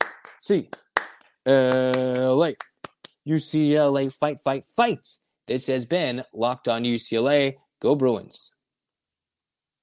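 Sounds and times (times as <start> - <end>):
rhythmic hand clapping: 0.0 - 3.2
speech: 0.5 - 0.8, 1.4 - 8.6.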